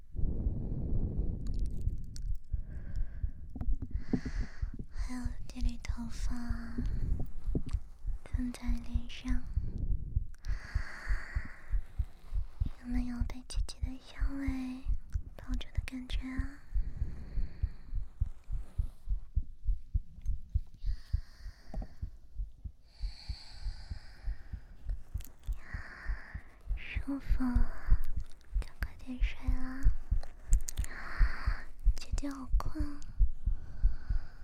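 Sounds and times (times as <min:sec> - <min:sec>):
older sister breathing: 0:00.0 - 0:08.3, 0:09.2 - 0:12.8, 0:16.4 - 0:19.4, 0:20.7 - 0:28.7, 0:29.9 - 0:32.0, 0:32.7 - 0:34.4
heartbeat: 0:00.0 - 0:34.4
speech: 0:05.1 - 0:07.2, 0:08.4 - 0:09.6, 0:12.9 - 0:14.9, 0:15.5 - 0:16.5.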